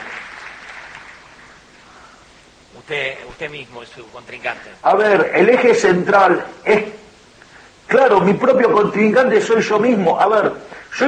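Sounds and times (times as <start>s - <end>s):
audience applause: 0.0s - 1.6s
speech: 2.8s - 7.0s, 8.0s - 11.0s.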